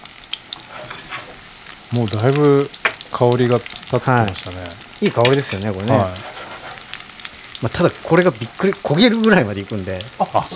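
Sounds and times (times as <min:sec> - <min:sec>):
scallions sizzling in frying oil: 0:00.0 - 0:10.5
speech: 0:01.9 - 0:06.3, 0:07.6 - 0:10.5.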